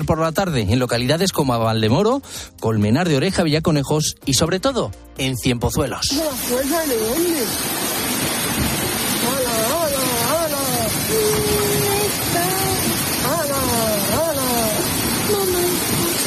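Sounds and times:
speech: 0:00.0 - 0:08.4
rushing floodwater torrent in streets: 0:06.0 - 0:16.2.

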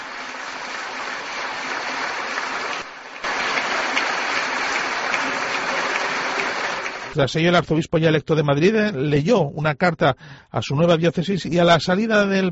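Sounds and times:
audience applause: 0:00.0 - 0:07.2
speech: 0:07.2 - 0:12.5.

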